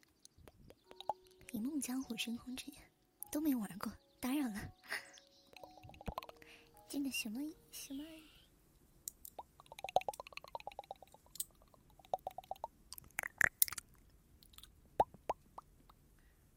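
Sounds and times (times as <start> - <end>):
sharp tongue clicks: 0.0 - 1.6, 5.0 - 6.8, 9.1 - 16.0
ASMR wet mouth smacks and licks: 0.2 - 1.5, 5.5 - 6.6, 9.2 - 15.7
speech: 1.6 - 5.0, 6.9 - 8.2.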